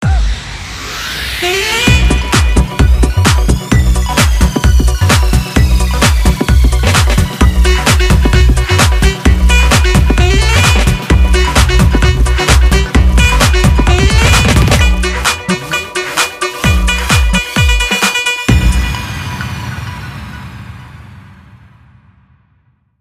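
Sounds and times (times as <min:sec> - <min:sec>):
show theme music: 0:01.4 - 0:20.9.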